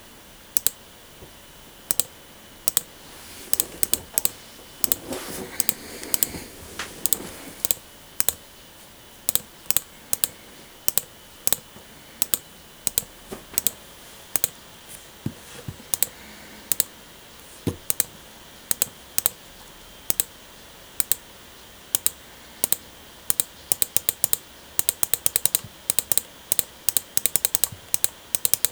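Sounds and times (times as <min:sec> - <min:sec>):
faint low hiss: 0:00.0 - 0:28.7
sharp bright mouse clicks: 0:00.6 - 0:00.8, 0:01.9 - 0:02.9, 0:03.5 - 0:05.0, 0:05.6 - 0:08.4, 0:09.3 - 0:14.6, 0:15.9 - 0:16.9, 0:17.7 - 0:18.1, 0:18.7 - 0:19.4, 0:20.1 - 0:20.3, 0:21.0 - 0:21.2, 0:22.0 - 0:28.7
soft rustle: 0:02.9 - 0:07.8, 0:13.2 - 0:16.7.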